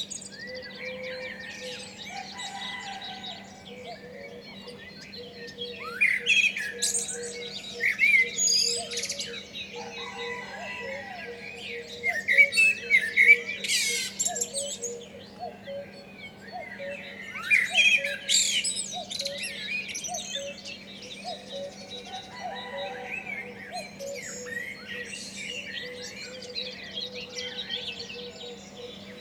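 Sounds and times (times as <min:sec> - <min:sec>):
garden birds in Douai Hauts de France: 0:00.0 - 0:29.1.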